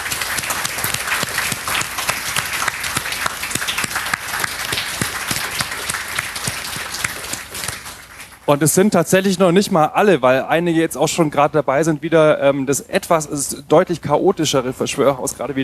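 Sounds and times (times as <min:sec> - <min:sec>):
audience applause: 0:00.0 - 0:08.6
speech: 0:08.5 - 0:15.6.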